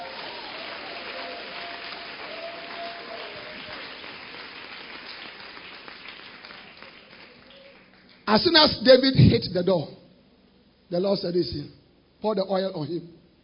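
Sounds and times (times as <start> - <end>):
large crowd applause: 0.0 - 8.2
speech: 8.3 - 10.0, 10.9 - 13.2.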